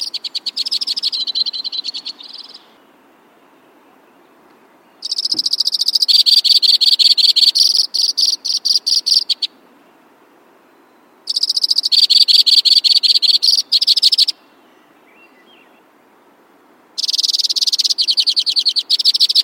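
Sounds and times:
White-winged crossbill trilling: 0.0 - 2.8, 5.0 - 9.5, 11.3 - 14.4, 17.0 - 19.4.

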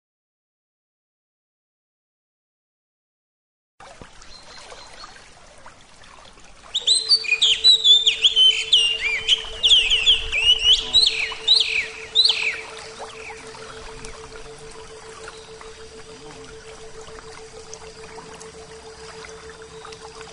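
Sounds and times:
Oriental magpie-robin song: 4.2 - 5.3, 6.6 - 20.3.

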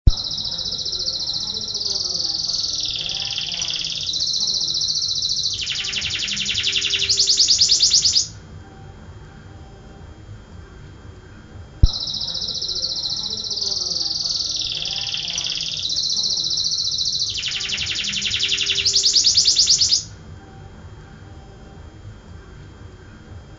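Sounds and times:
canary: 0.1 - 8.4, 11.8 - 20.1.

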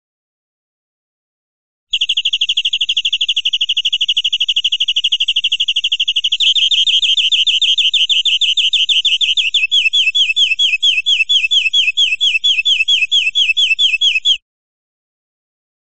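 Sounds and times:
European greenfinch buzzy trill: 1.9 - 14.4.

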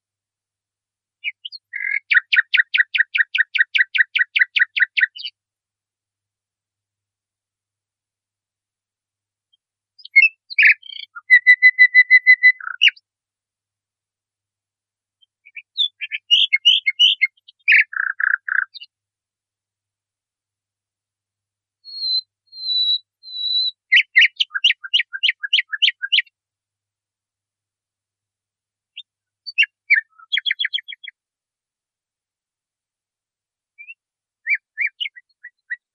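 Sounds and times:
nightingale song: 1.2 - 5.4, 9.5 - 13.1, 15.2 - 19.0, 21.8 - 26.4, 28.9 - 31.2, 33.8 - 35.9.

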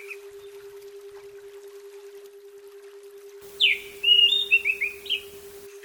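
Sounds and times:
female Oriental magpie-robin whistles and ciam calls: 3.5 - 5.7.

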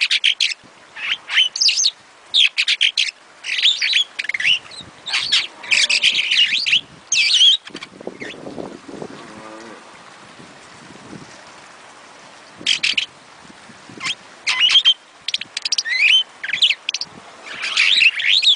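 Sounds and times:
starling singing clipped chirps, squeaky whistles and buzzy notes: 0.0 - 8.5, 12.6 - 13.1, 14.0 - 18.5.

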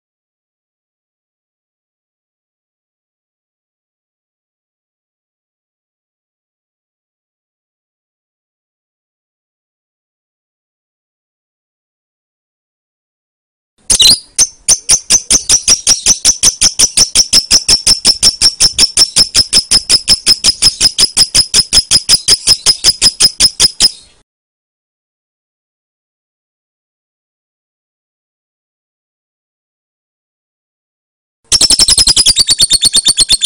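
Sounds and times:
lovebird calls: 13.9 - 24.2, 31.5 - 33.4.

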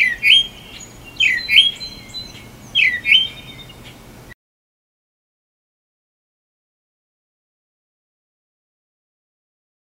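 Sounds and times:
northern mockingbird singing: 0.0 - 4.1.

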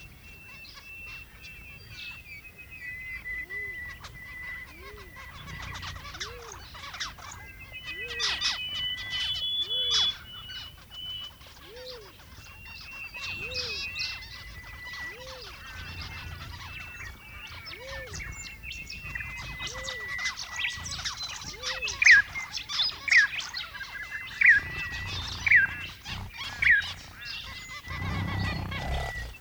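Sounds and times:
zebra finch song and calls: 0.0 - 29.3.

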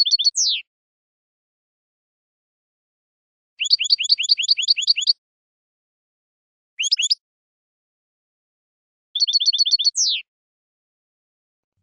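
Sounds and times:
European goldfinch singing: 0.0 - 0.6, 3.6 - 5.2, 6.8 - 7.2, 9.2 - 10.2.

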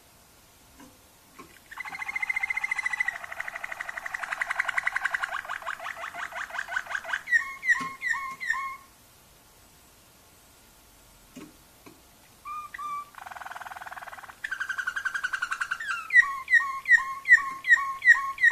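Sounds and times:
canary singing: 1.5 - 8.9, 12.3 - 18.5.

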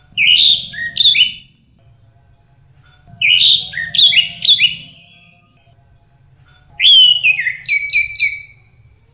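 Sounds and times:
orange-headed thrush calling: 0.2 - 1.5, 3.2 - 5.3, 6.8 - 8.6.

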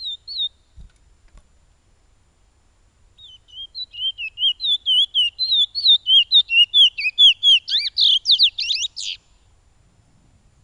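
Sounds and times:
piolet bird song: 0.0 - 0.9, 3.2 - 9.6.

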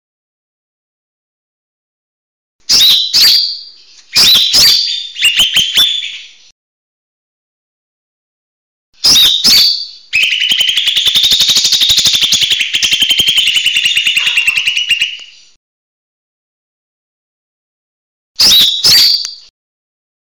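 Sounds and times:
leafbird whistled slurs: 2.7 - 6.4, 9.1 - 15.5.

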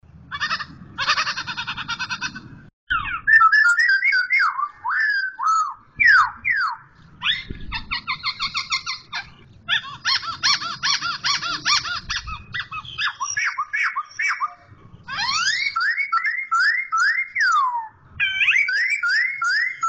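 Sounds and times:
Black-throated laughingthrush trilling, whistling and chattering: 0.3 - 19.8.

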